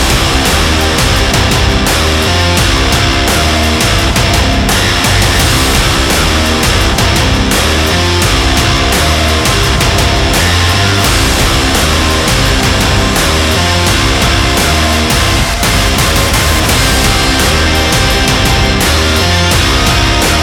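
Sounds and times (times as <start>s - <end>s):
sport intro music: 0.0s - 20.4s.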